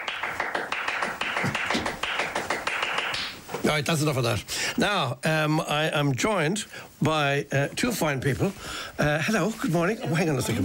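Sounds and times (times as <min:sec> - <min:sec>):
Spanish-style rhythmic hand clapping: 0:00.0 - 0:03.5
speech: 0:03.7 - 0:10.6.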